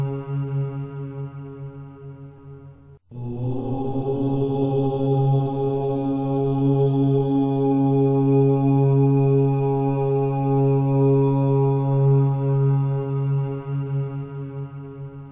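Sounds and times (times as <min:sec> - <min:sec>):
mantra chanting: 0:00.0 - 0:02.5, 0:03.1 - 0:15.2.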